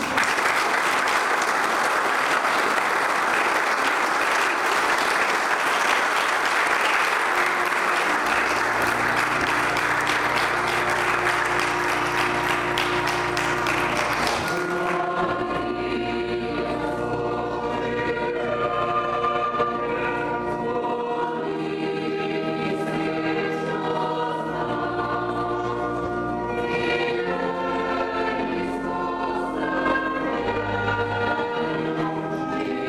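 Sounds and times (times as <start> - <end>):
audience applause: 0.0 - 15.1
sustained music: 4.5 - 32.8.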